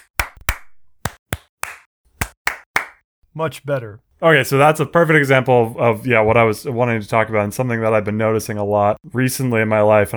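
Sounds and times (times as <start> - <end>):
sharp hand claps used as a slate to sync audio: 0.0 - 3.0
speech: 3.4 - 10.1.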